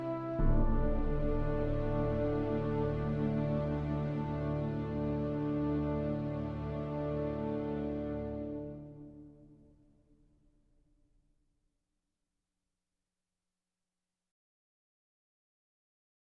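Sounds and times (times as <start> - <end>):
choir: 0.0 - 9.0
orchestra: 0.0 - 9.4.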